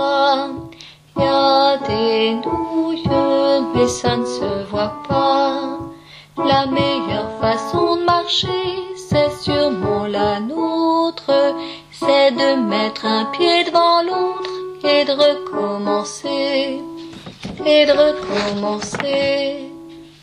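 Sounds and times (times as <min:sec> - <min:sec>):
alto voice singing: 0:00.0 - 0:19.9.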